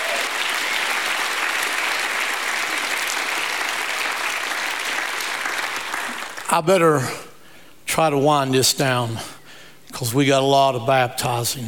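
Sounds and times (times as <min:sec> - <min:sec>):
audience applauding, hand clapping: 0:00.0 - 0:06.6
speech: 0:06.5 - 0:07.3, 0:08.0 - 0:11.6.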